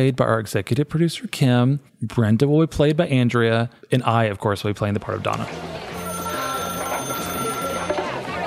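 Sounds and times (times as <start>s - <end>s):
speech: 0.0s - 5.8s
telephone ringing with a steady electronic tone: 5.9s - 8.4s.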